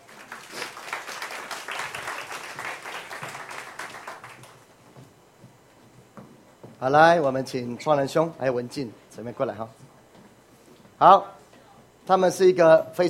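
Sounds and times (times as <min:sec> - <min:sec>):
audience applause: 0:00.0 - 0:04.6
speech: 0:06.8 - 0:09.9, 0:11.0 - 0:11.4, 0:12.1 - 0:13.0.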